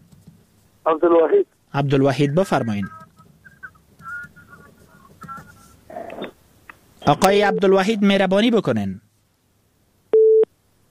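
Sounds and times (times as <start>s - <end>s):
speech: 0.8s - 3.0s, 7.1s - 9.0s
busy-signal beep after a dropped phone call: 10.2s - 10.5s.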